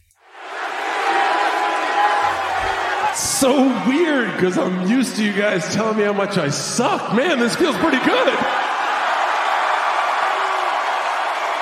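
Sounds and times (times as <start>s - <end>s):
live wrestling crowd cheering: 0.2s - 11.6s
scattered shouts and whoops from the crowd: 0.4s - 5.5s, 7.7s - 11.6s
speech: 3.4s - 8.6s.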